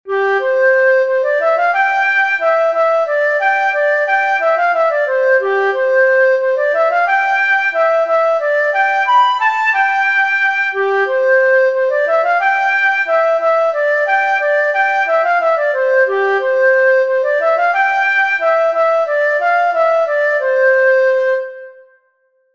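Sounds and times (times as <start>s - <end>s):
flute solos: 0.1s - 22.0s.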